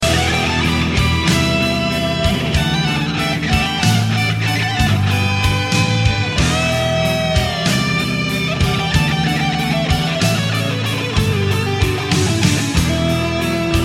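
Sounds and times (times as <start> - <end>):
guitar riff: 0.0 - 13.8.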